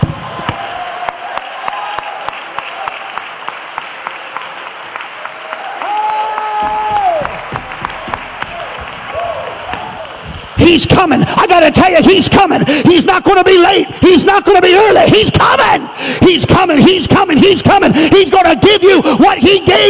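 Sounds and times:
crowd cheering: 0.0 - 10.9
audience clapping: 0.5 - 11.2
speech: 10.7 - 19.8.

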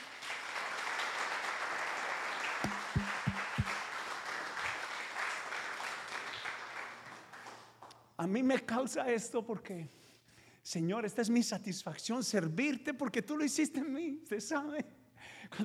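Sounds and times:
audience applause: 0.0 - 7.6
speech: 8.2 - 10.0, 10.7 - 15.6.

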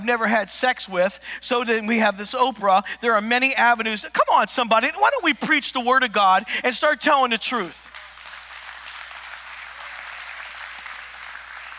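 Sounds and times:
speech: 0.0 - 7.8
audience courtesy clapping: 7.5 - 11.7.

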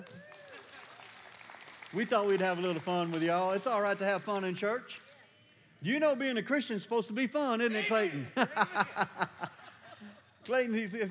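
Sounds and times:
audience hand clapping: 0.0 - 5.1
speech: 1.9 - 5.0, 5.8 - 9.5, 10.4 - 11.0
laughter: 7.8 - 10.3.

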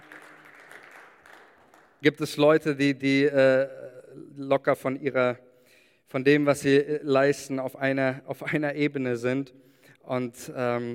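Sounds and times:
group clapping: 0.0 - 2.1
speech: 2.0 - 5.5, 6.1 - 10.9.

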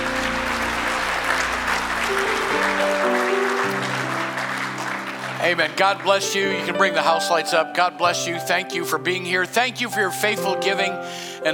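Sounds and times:
audience clapping hands: 0.0 - 7.6
sustained organ-like tones: 0.0 - 11.5
speech: 5.4 - 11.5.

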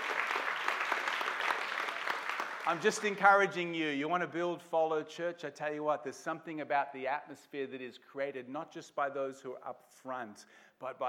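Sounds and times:
audience clapping: 0.0 - 3.6
speech: 2.7 - 11.0.

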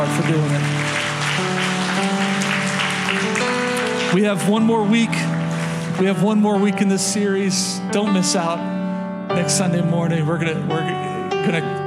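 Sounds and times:
speech: 0.0 - 0.8, 4.1 - 5.4, 6.0 - 11.8
audience hand clapping: 0.0 - 6.4.

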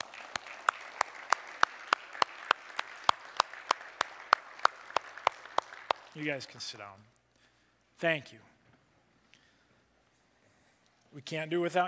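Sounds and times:
audience applause: 0.0 - 6.6
speech: 6.2 - 7.2, 8.0 - 8.5, 11.1 - 11.8.

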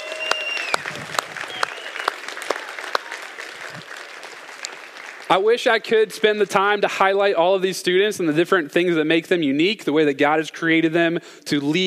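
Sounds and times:
audience round of applause: 0.0 - 5.8
speech: 5.3 - 11.8.

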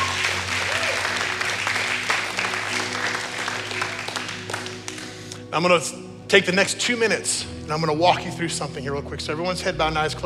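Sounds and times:
audience applause: 0.0 - 5.4
speech: 5.5 - 10.2.

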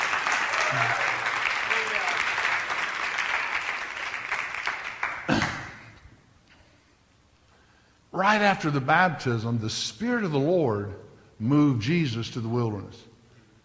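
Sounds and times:
audience applause: 0.0 - 5.8
speech: 0.7 - 1.1, 8.2 - 13.1.

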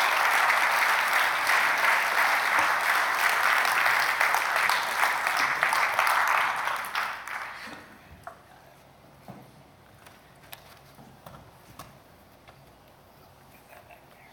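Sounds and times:
audience clapping as guests are welcomed to a stage: 0.0 - 8.0.

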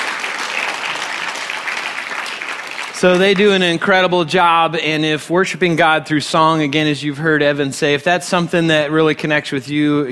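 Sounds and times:
audience applause: 0.0 - 3.8
speech: 3.0 - 10.1.

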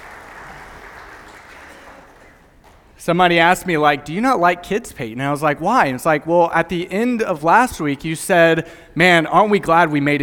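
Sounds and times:
audience applause: 0.0 - 2.8
speech: 3.0 - 10.2.

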